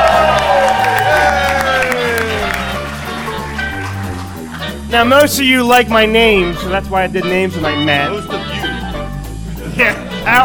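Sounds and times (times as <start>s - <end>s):
live audience whooping at Star Wars Celebration Orlando 2017: 0.0s - 4.5s
live audience applause at Star Wars Celebration Orlando 2017: 0.0s - 4.9s
speech: 4.9s - 8.4s, 9.8s - 10.4s.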